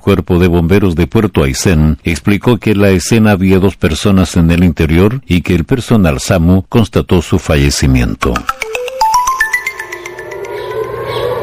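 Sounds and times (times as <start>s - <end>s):
speech: 0.0s - 8.8s
air raid sirens: 9.8s - 11.4s.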